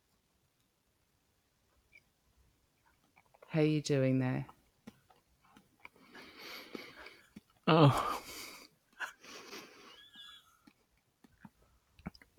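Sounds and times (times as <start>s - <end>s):
speech: 3.5s - 4.6s, 7.7s - 8.2s
person munching on a banana: 4.6s - 9.9s, 10.6s - 12.3s.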